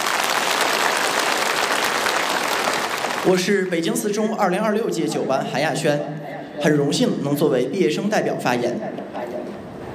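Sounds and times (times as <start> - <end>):
crowd applause: 0.0 - 3.5
speech: 3.2 - 9.2.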